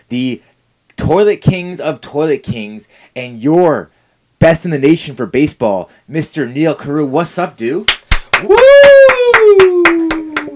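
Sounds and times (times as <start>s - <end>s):
speech: 0.1s - 9.0s
slow golf clap: 7.9s - 10.5s.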